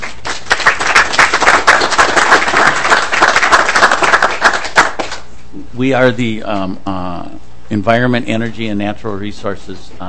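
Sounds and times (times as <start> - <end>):
group applauding: 0.0 - 5.3
speech: 5.8 - 10.0.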